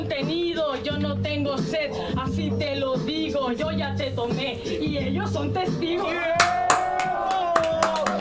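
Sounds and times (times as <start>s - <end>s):
speech: 0.1s - 6.6s
audience applause after a rap battle: 6.4s - 8.1s.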